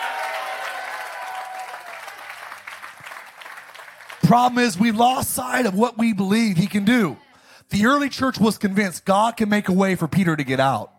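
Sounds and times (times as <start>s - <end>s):
audience hand clapping: 0.0s - 5.0s
speech: 4.3s - 10.9s.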